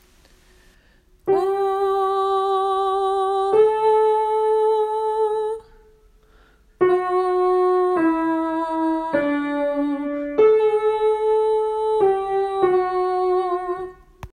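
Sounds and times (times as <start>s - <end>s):
tenor singing: 1.3s - 5.7s, 6.8s - 14.1s.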